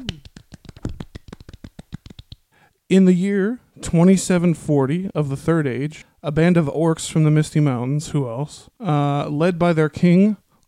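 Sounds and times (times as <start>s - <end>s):
small round of applause: 0.0s - 2.4s
speech: 2.9s - 10.4s.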